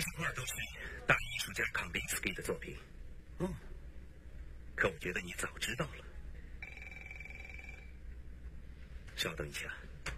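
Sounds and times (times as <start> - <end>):
low hum: 0.0 - 10.1
speech: 0.2 - 3.7, 4.8 - 6.1, 9.2 - 9.9
telephone ringing with a high electronic trill: 6.6 - 8.0.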